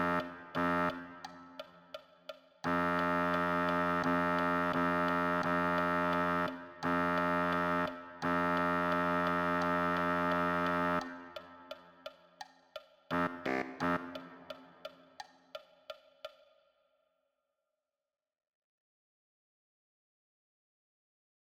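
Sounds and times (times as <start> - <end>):
baritone saxophone: 0.0 - 1.6, 2.6 - 11.7, 13.1 - 14.8.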